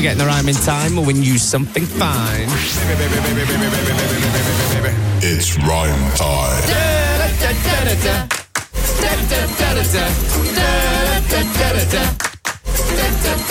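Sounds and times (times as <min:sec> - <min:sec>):
speech: 0:00.0 - 0:08.4, 0:09.0 - 0:12.2
clapping: 0:08.3 - 0:08.8, 0:12.2 - 0:13.1.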